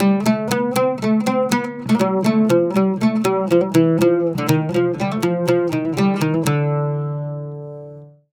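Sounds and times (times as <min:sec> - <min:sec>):
Mediterranean traditional oud playing: 0:00.0 - 0:08.3.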